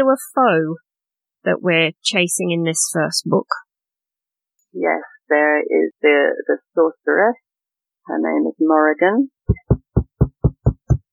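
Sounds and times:
speech: 0.0 - 3.6, 4.7 - 7.4, 8.0 - 9.6
knocking on a door: 9.5 - 11.1.

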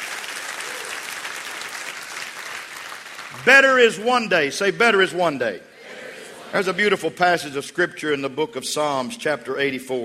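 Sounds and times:
audience clapping hands: 0.0 - 4.3
speech: 3.3 - 5.7, 6.5 - 10.0.

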